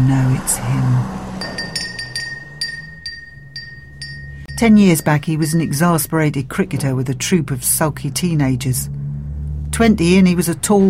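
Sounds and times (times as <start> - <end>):
speech: 0.0 - 1.2, 4.6 - 9.0, 9.8 - 10.8
low steady hum: 0.0 - 10.6
small door bell jingling: 1.4 - 6.8.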